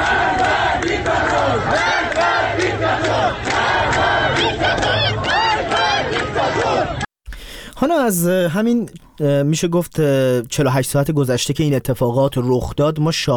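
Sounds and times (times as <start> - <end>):
protest crowd chanting in the street: 0.0 - 7.1
speech: 7.8 - 13.3.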